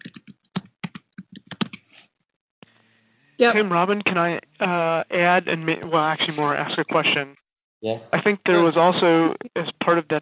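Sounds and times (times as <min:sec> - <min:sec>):
typing on a computer keyboard: 0:00.0 - 0:02.1
speech: 0:03.4 - 0:10.2.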